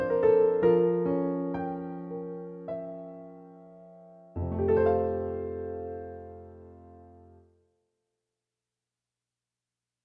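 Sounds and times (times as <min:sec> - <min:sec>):
piano piece: 0:00.0 - 0:07.7.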